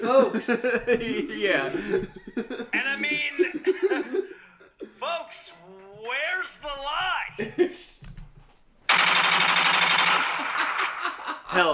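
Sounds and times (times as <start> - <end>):
speech: 0.0 - 4.2
laughter: 0.0 - 5.2, 7.3 - 8.0, 10.2 - 11.7
machine gun fire sound effect: 8.9 - 11.0.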